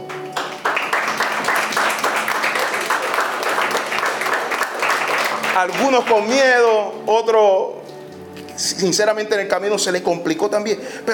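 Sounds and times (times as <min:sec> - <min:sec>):
audience applause: 0:00.0 - 0:06.4
speech: 0:05.6 - 0:07.8, 0:08.6 - 0:11.1.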